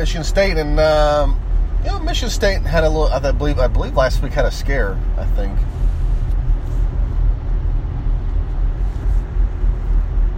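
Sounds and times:
speech: 0.0 - 5.8
car being driven heard from inside the cabin: 0.0 - 10.3.

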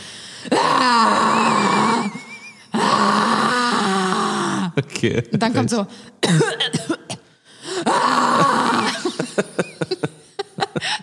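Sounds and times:
speech: 0.4 - 1.2, 4.8 - 7.0
voice imitating vomiting: 0.5 - 4.8, 7.8 - 9.3
laughter: 8.4 - 11.0.

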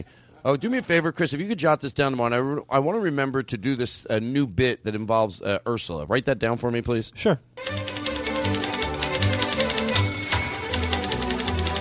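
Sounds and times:
speech: 0.0 - 7.9
music playing: 7.6 - 11.8
vigorous typing: 7.6 - 11.8.

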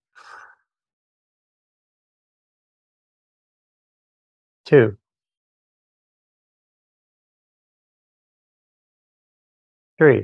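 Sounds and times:
breath drawn in through the mouth during a guided breathing exercise: 0.1 - 0.6
speech: 4.7 - 5.0, 10.0 - 10.2.

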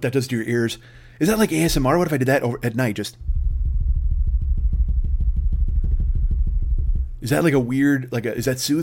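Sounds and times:
speech: 0.0 - 3.3, 7.2 - 8.8
drum roll made with the mouth: 3.2 - 7.8.

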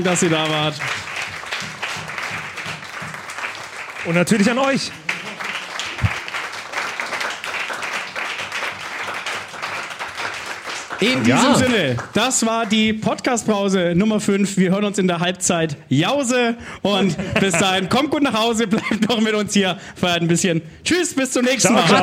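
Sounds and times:
speech: 0.0 - 1.1, 4.0 - 5.0, 11.0 - 22.0
audience applause: 0.0 - 13.0, 17.2 - 17.9, 21.6 - 22.0
laughter: 5.0 - 6.2, 11.0 - 12.0, 16.9 - 19.3, 21.6 - 22.0.

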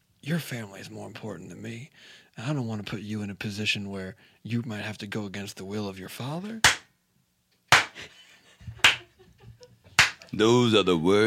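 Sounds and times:
speech: 0.2 - 6.8, 10.4 - 11.2
steel robotic arm clapping: 6.6 - 6.9, 10.0 - 10.2.

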